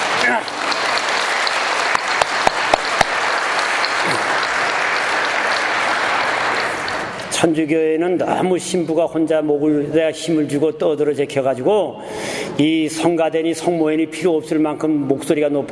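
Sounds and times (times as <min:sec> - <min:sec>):
audience applauding the choir: 0:00.0 - 0:07.4
speech: 0:00.3 - 0:00.6, 0:07.4 - 0:15.6.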